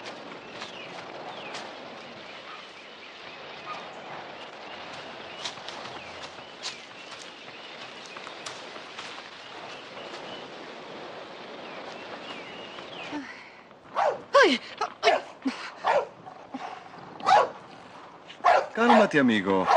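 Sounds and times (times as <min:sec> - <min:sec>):
rushing noise: 0:00.0 - 0:19.7
dog barking: 0:14.0 - 0:14.3, 0:15.8 - 0:16.2, 0:17.2 - 0:17.6, 0:18.4 - 0:19.7
speech: 0:14.4 - 0:14.8, 0:19.1 - 0:19.7.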